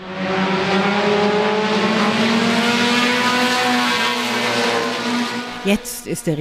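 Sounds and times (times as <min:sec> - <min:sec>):
stock car engines roaring around a short track: 0:00.0 - 0:06.3
speech: 0:05.7 - 0:06.3.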